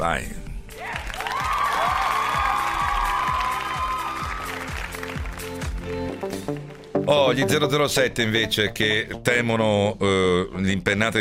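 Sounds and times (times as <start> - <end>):
speech: 0.0 - 0.4, 7.1 - 11.2
applause: 0.7 - 7.0.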